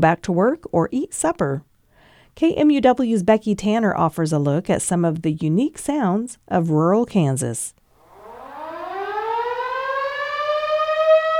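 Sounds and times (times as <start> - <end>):
speech: 0.0 - 1.7, 2.4 - 7.8
rural town whistle severe weather siren wailing: 8.0 - 11.3.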